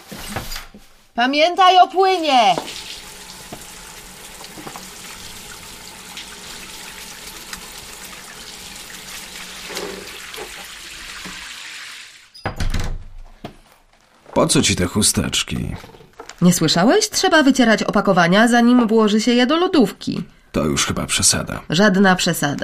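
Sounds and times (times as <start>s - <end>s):
speech: 1.2s - 2.7s, 14.4s - 22.6s
washing hands at a bathroom sink: 1.8s - 12.3s.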